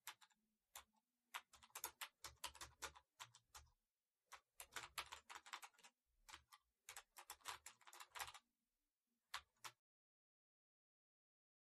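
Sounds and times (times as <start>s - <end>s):
fast touch typing clicks: 0.0s - 3.7s, 4.3s - 8.4s.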